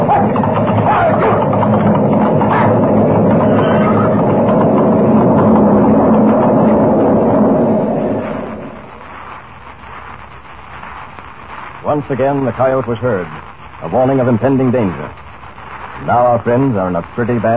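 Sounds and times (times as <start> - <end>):
avalanche rumbling down a mountain: 0.0 - 17.5
speech: 12.1 - 15.2, 16.0 - 17.5.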